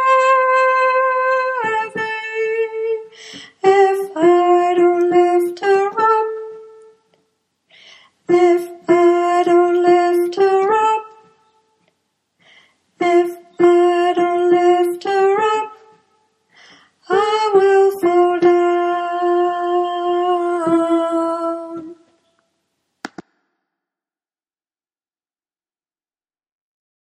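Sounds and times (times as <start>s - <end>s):
soprano singing: 0.0s - 7.1s, 8.3s - 11.5s, 13.0s - 16.0s, 17.0s - 22.3s.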